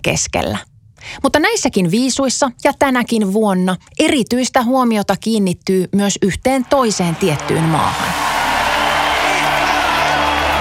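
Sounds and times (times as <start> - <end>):
speech: 0.0 - 8.3
crowd applause: 6.6 - 10.5.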